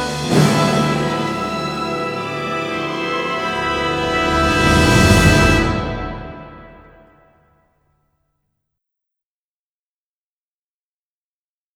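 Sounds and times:
koto string melody: 0:00.2 - 0:07.0.

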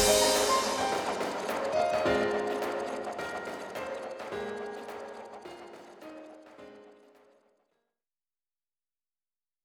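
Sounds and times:
instrumental music: 0:00.0 - 0:07.2.

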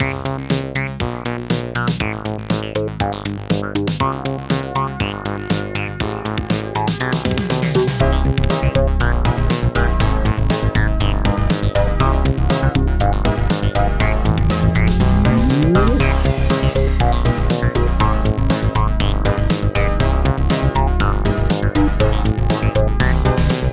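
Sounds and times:
instrumental music: 0:00.0 - 0:23.7.

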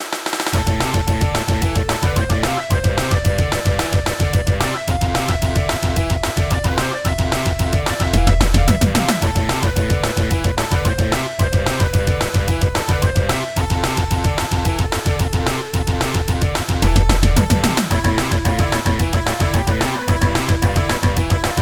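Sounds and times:
upbeat music: 0:00.6 - 0:21.5.

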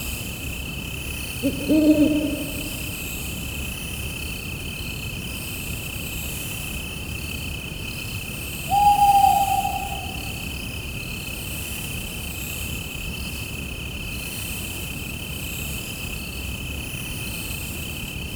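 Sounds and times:
crickets chirping: 0:01.1 - 0:03.2, 0:08.4 - 0:10.8.

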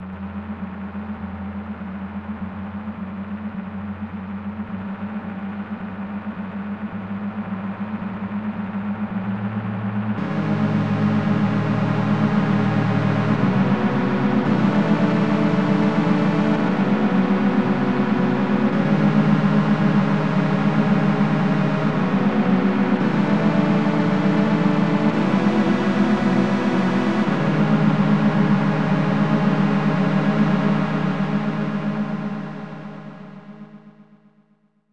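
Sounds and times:
noise: 0:00.0 - 0:34.6.

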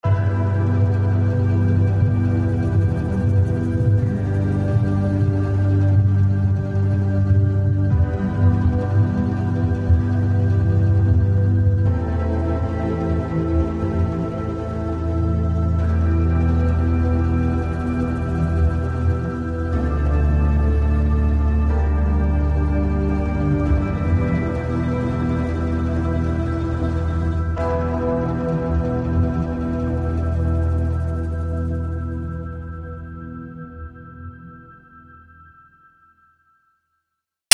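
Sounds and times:
suspense music loop: 0:00.0 - 0:34.4.

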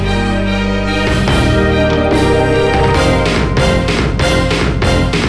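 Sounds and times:
huge jingle: 0:00.2 - 0:05.2.

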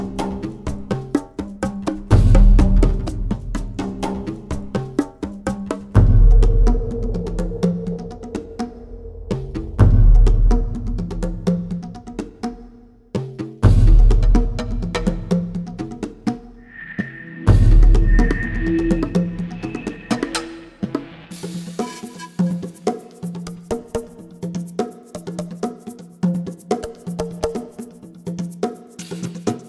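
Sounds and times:
ambient action drums at 125 bpm: 0:00.0 - 0:22.8.

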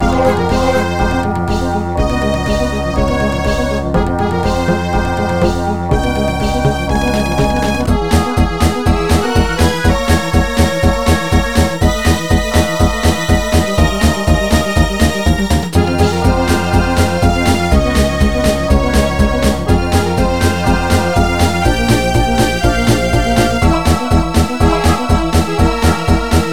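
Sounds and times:
background music: 0:00.0 - 0:26.5.

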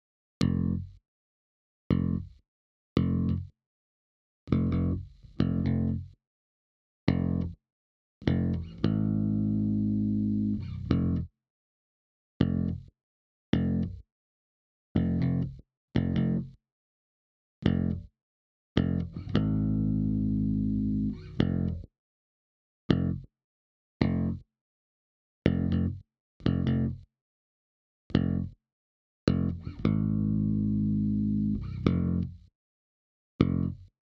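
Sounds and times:
bass: 0:00.4 - 0:01.0, 0:01.9 - 0:02.4, 0:03.0 - 0:03.6, 0:04.5 - 0:06.2, 0:07.1 - 0:07.6, 0:08.2 - 0:11.3, 0:12.4 - 0:12.9, 0:13.5 - 0:14.1, 0:15.0 - 0:16.6, 0:17.6 - 0:18.1, 0:18.8 - 0:21.9, 0:22.9 - 0:23.3, 0:24.0 - 0:24.5, 0:25.5 - 0:27.1, 0:28.1 - 0:28.6, 0:29.3 - 0:32.5, 0:33.4 - 0:34.0.

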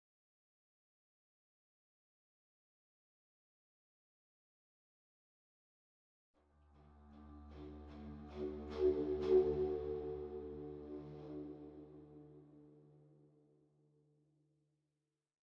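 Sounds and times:
flute: 0:07.5 - 0:13.6.

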